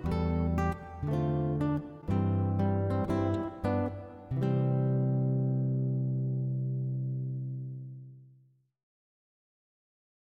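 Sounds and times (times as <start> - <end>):
music piece: 0.0 - 8.2.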